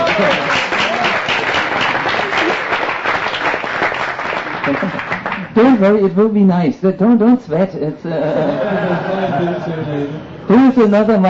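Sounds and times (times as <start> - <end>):
laughter: 0.0 - 1.2, 8.0 - 10.4
audience applause in a large gathering: 0.0 - 5.5
speech: 5.6 - 11.2.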